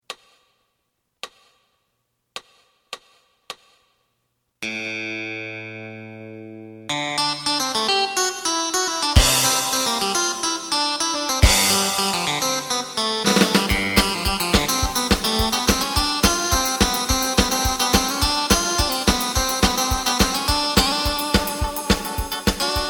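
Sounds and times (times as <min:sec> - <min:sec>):
bass: 0:05.6 - 0:22.8.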